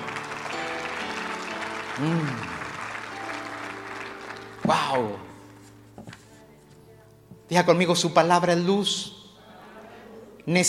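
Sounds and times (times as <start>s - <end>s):
audience applauding loudly: 0.0s - 5.6s
speech: 2.0s - 2.6s, 4.7s - 5.3s, 7.5s - 9.2s, 10.4s - 10.6s.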